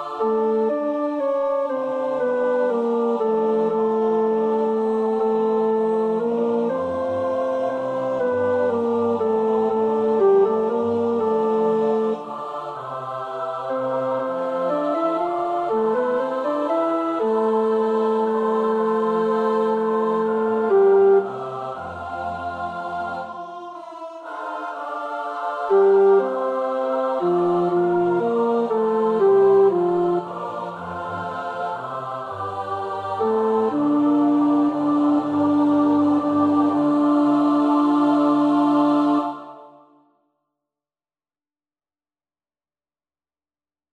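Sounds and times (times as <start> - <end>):
tenor: 0.0 - 23.4, 24.3 - 39.7.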